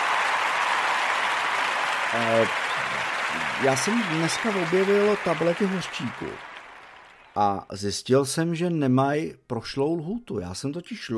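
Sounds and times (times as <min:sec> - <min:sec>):
hand clapping: 0:00.0 - 0:07.4
speech: 0:02.1 - 0:02.7, 0:03.4 - 0:06.5, 0:07.4 - 0:11.1.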